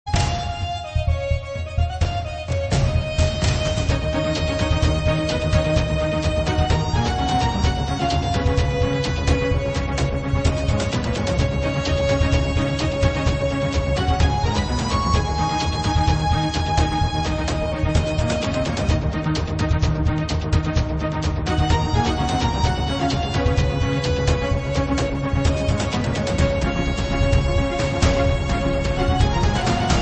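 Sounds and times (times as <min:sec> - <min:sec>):
orchestra: 0:00.1 - 0:29.9.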